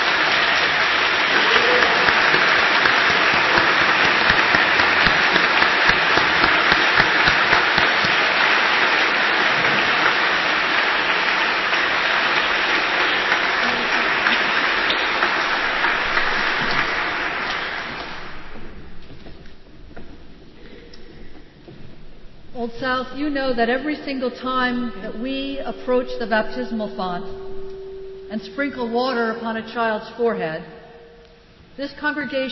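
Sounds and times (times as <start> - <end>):
audience applause: 0.0 - 18.8
speech: 23.3 - 27.5, 28.3 - 30.8, 31.8 - 32.4.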